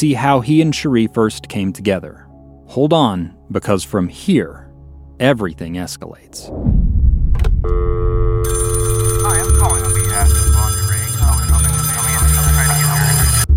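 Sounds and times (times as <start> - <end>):
speech: 0.0 - 4.6, 5.2 - 7.0
telephone ringing with a bright electronic tone: 7.7 - 13.5.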